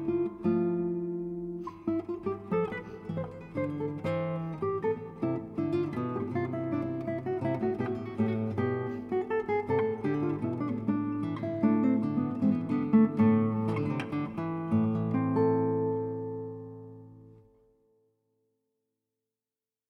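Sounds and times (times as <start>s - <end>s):
guitar suite movement in A minor: 0.0s - 18.1s.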